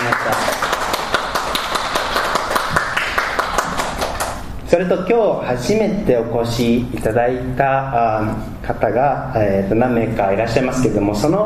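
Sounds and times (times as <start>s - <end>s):
audience applause: 0.0s - 4.4s
speech: 4.7s - 11.4s.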